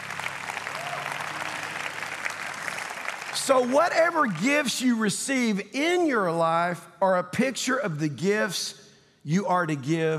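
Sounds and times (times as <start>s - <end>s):
crowd clapping: 0.0s - 5.0s
speech: 3.4s - 10.1s.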